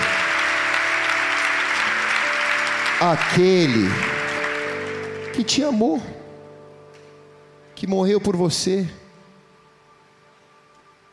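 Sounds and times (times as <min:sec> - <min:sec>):
audience applause: 0:00.0 - 0:05.6
speech: 0:03.0 - 0:04.2, 0:05.4 - 0:06.1, 0:07.8 - 0:09.0.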